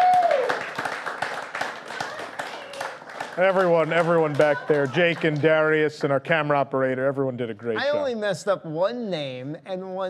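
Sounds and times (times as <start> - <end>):
audience clapping: 0.0 - 6.2
speech: 3.4 - 10.0.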